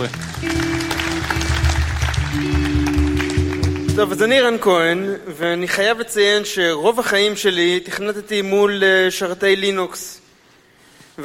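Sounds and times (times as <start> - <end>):
speech: 0.0 - 0.8, 4.0 - 10.2
audience applause: 0.0 - 4.3.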